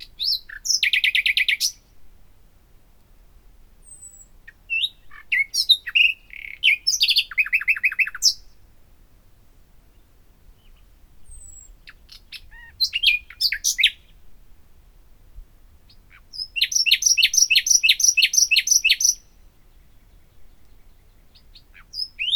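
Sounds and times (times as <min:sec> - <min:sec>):
common nightingale Luscinia megarhynchos singing: 0:00.0 - 0:02.0, 0:03.8 - 0:08.6, 0:09.9 - 0:14.2, 0:15.9 - 0:22.3.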